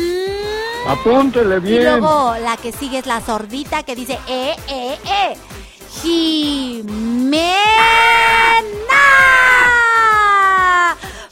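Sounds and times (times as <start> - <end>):
speech: 0.9 - 9.8
children applauding and cheering: 7.6 - 11.0.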